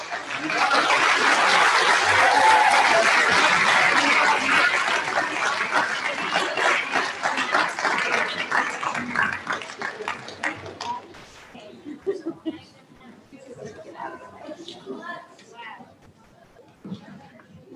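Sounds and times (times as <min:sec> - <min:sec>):
laughter: 0:00.0 - 0:10.8, 0:11.7 - 0:15.2
audience applause for winners: 0:00.0 - 0:11.2.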